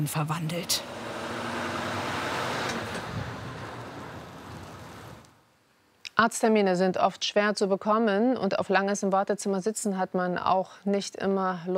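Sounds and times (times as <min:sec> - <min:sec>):
speech: 0:00.0 - 0:01.0, 0:06.2 - 0:11.7
truck engine running: 0:00.0 - 0:05.4.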